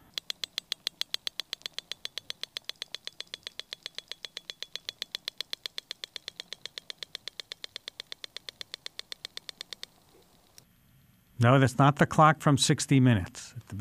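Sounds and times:
narwhal clicking sounds: 0.0s - 10.6s
speech: 11.4s - 13.8s.

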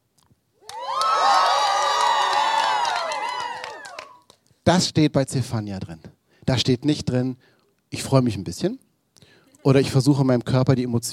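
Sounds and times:
crowd cheering: 0.6s - 4.3s
speech: 4.7s - 8.8s, 9.6s - 11.1s.

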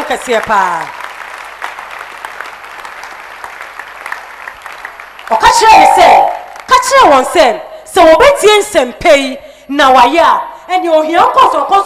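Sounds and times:
audience clapping hands: 0.0s - 6.7s
speech: 0.1s - 1.0s, 5.3s - 11.8s.

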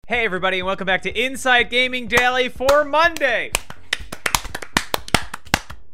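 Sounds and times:
speech: 0.1s - 3.7s
hands clapping: 2.1s - 5.9s.

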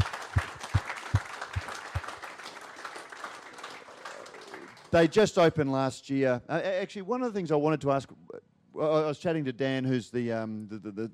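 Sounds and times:
audience round of applause: 0.0s - 5.1s
speech: 4.9s - 8.2s, 8.8s - 11.1s.

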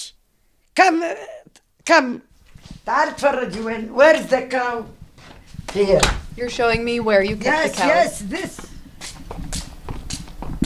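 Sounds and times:
speech: 0.8s - 5.0s, 5.7s - 8.7s
footsteps walking out to the barn: 2.3s - 10.6s.

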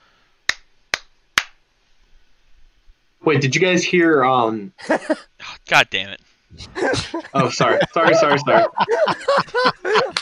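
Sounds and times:
sharp hand claps as sync marker: 0.5s - 1.6s
speech: 3.2s - 10.1s
laughter: 4.8s - 5.3s, 6.5s - 10.1s.

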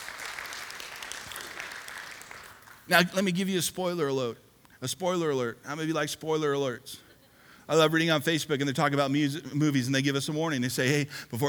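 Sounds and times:
audience applause: 0.0s - 3.2s
speech: 2.9s - 7.0s, 7.7s - 11.4s.

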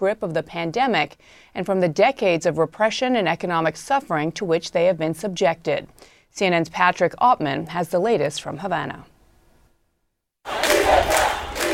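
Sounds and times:
speech: 0.0s - 9.1s
crowd of protesters yelling slogans in the streets of Havana: 10.5s - 11.7s.

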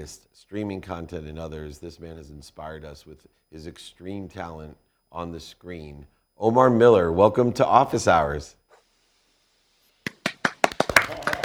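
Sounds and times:
speech: 0.0s - 8.6s
applause: 10.0s - 11.4s.

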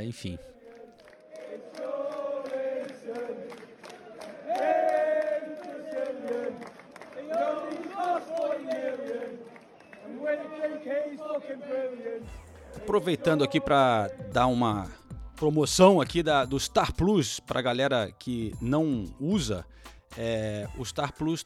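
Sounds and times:
speech: 0.0s - 0.6s, 10.2s - 21.4s
large stadium crowd singing a chant in unison: 0.4s - 15.0s.

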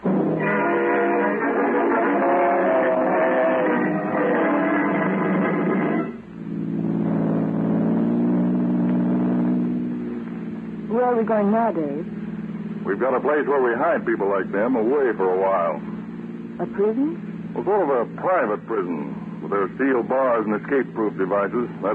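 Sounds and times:
car engine driving off: 0.0s - 21.9s
speech: 11.2s - 12.1s, 12.8s - 15.9s, 16.6s - 21.9s.

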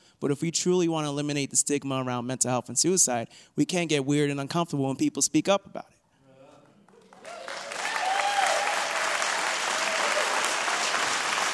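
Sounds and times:
speech: 0.2s - 6.0s
audience applause: 6.9s - 11.5s.

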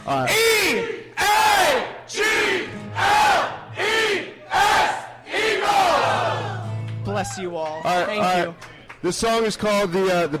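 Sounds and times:
speech: 0.1s - 1.0s, 7.4s - 10.3s
crowd chanting sports team chant: 0.6s - 6.7s.

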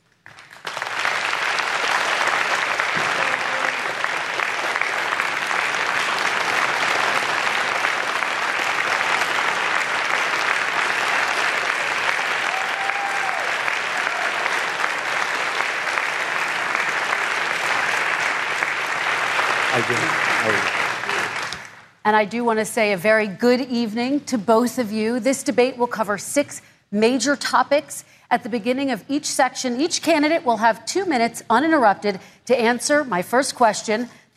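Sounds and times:
audience applause in the hall at the final presidential debate: 0.3s - 21.9s
speech: 22.1s - 34.3s.

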